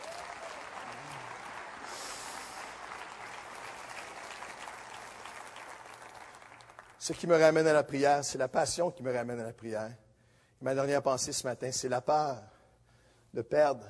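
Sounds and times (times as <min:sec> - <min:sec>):
audience applauding: 0:00.0 - 0:07.2
speech: 0:07.0 - 0:10.0, 0:10.6 - 0:12.5, 0:13.3 - 0:13.8.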